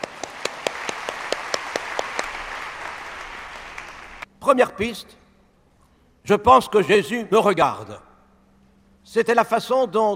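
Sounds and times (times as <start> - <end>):
applause: 0.0 - 4.3
speech: 4.4 - 5.2, 6.2 - 8.1, 9.0 - 10.1.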